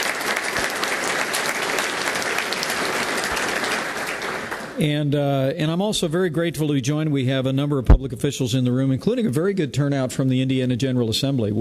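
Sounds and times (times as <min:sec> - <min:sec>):
audience applause: 0:00.0 - 0:04.8
speech: 0:04.8 - 0:11.6.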